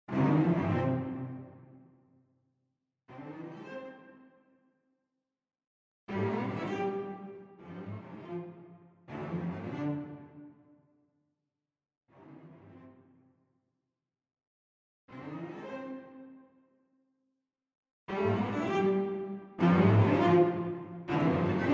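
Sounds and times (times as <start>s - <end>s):
string ensemble: 0.1s - 1.7s, 6.1s - 10.5s, 18.1s - 21.7s.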